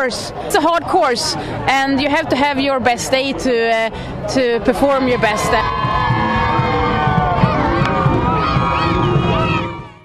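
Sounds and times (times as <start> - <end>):
speech: 0.0 - 6.1
crowd of supporters cheering athletes: 4.8 - 10.0.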